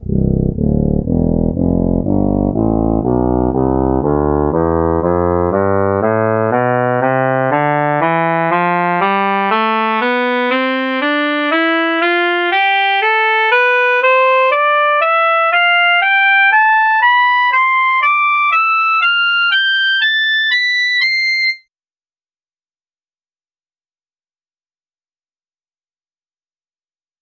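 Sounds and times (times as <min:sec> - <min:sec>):
soprano saxophone playing a scale: 0:00.0 - 0:21.6.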